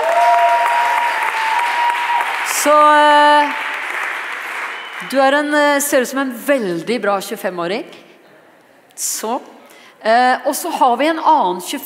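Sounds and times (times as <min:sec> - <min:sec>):
audience applause: 0:00.0 - 0:05.1
speech: 0:02.6 - 0:03.7, 0:05.0 - 0:08.0, 0:09.0 - 0:11.8.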